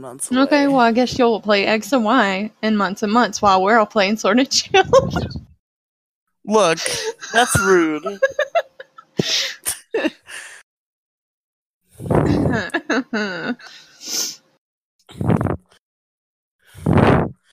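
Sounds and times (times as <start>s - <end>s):
speech: 0.0s - 5.5s, 6.4s - 8.4s, 10.0s - 10.2s, 12.0s - 14.3s
laughter: 6.5s - 10.3s, 12.3s - 13.7s
breathing into the microphone: 6.8s - 7.3s, 11.9s - 12.6s, 15.1s - 15.8s, 16.6s - 17.5s.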